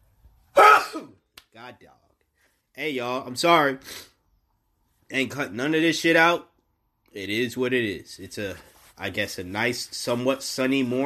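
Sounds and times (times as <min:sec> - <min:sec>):
sneeze: 0:00.6 - 0:01.2
speech: 0:01.0 - 0:02.1, 0:02.8 - 0:04.1, 0:05.1 - 0:06.5, 0:07.1 - 0:11.0.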